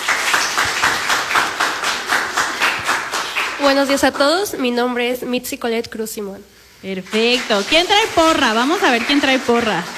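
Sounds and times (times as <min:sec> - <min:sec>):
group applause: 0:00.0 - 0:04.4, 0:07.0 - 0:09.9
speech: 0:03.6 - 0:09.9.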